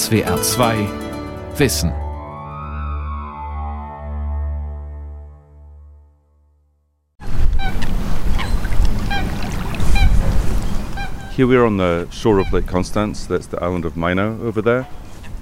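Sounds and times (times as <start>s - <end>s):
speech: 0.1s - 2.0s, 11.4s - 15.0s
low electronic tone: 0.9s - 6.7s
wind on Lake Constance shore: 7.2s - 15.3s
birds honking and chirping: 7.5s - 12.8s.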